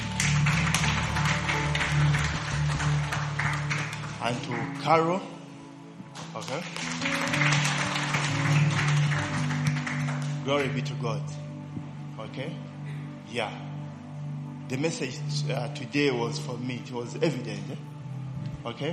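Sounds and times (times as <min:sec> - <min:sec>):
audience clapping hands: 0:00.0 - 0:04.9, 0:06.1 - 0:10.9
speech: 0:04.3 - 0:05.4, 0:06.4 - 0:07.4, 0:10.5 - 0:11.4, 0:12.3 - 0:12.7, 0:13.3 - 0:13.7, 0:14.7 - 0:17.9, 0:18.6 - 0:18.9.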